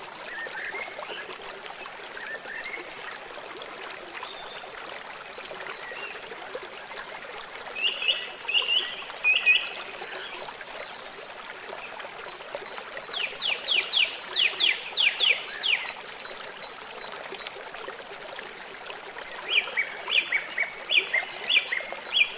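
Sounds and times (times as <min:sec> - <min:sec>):
gentle river flowing: 0:00.0 - 0:22.3.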